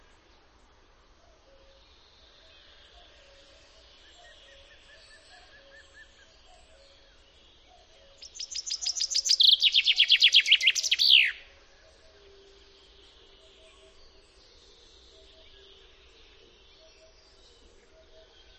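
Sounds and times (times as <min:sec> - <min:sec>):
Common chaffinch singing: 0:08.2 - 0:11.5.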